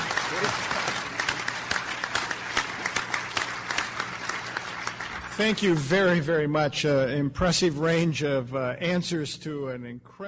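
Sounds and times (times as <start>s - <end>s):
audience applause: 0.0s - 6.2s
speech: 5.4s - 10.2s.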